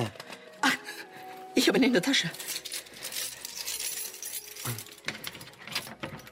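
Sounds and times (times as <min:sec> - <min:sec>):
spare key scraping and rattling in a lock blocked by another key: 0:01.4 - 0:06.2
speech: 0:01.6 - 0:02.6.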